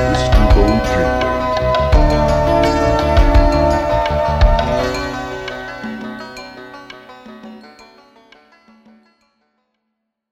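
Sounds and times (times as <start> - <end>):
telephone on-hold music: 0.0 - 7.7.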